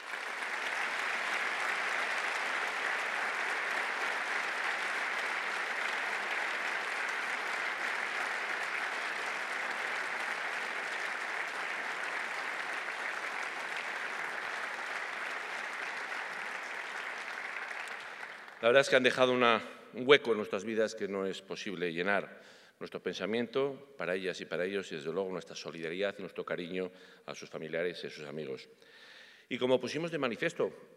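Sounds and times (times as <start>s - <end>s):
audience applause: 0.0s - 18.8s
speech: 18.6s - 30.9s.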